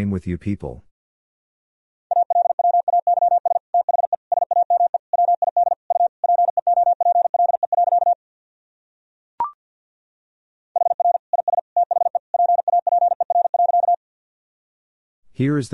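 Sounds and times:
Morse code tones at 50 words per minute: 2.1 - 8.2, 10.8 - 14.0.

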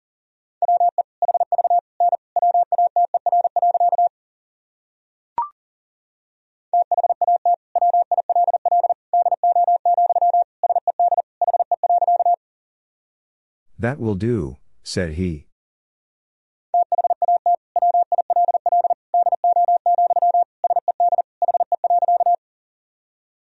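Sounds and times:
Morse code tones at 40 wpm: 0.6 - 4.1, 6.8 - 12.4, 16.8 - 22.4
speech: 13.8 - 15.5.

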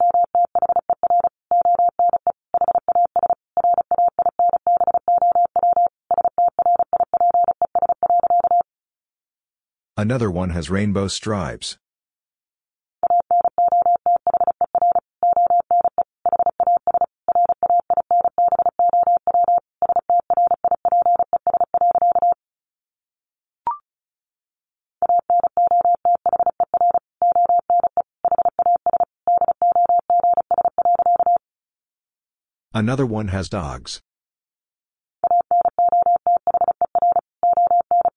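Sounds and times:
Morse code tones at 35 words per minute: 0.0 - 8.6, 13.0 - 22.4, 25.0 - 31.4, 35.2 - 38.1
speech: 10.0 - 11.8, 32.8 - 34.0.

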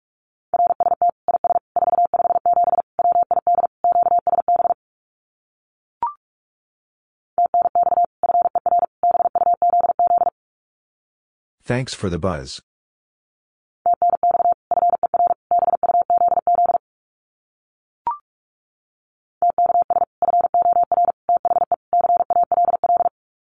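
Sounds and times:
Morse code at 45 words per minute: 0.6 - 4.8, 7.4 - 10.3, 13.9 - 16.8, 19.4 - 23.1
speech: 11.7 - 12.7.

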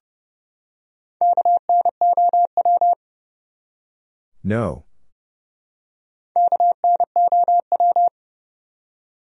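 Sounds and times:
fast Morse code tones at 30 words per minute: 1.2 - 3.0, 6.4 - 8.1
speech: 1.2 - 3.0, 4.4 - 4.9.

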